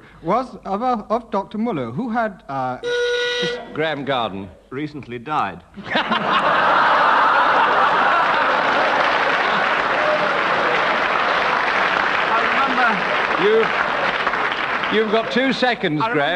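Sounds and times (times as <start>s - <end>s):
speech: 0.2s - 6.6s, 14.9s - 16.3s
audience laughter: 5.8s - 11.6s
live audience applause: 6.4s - 15.8s.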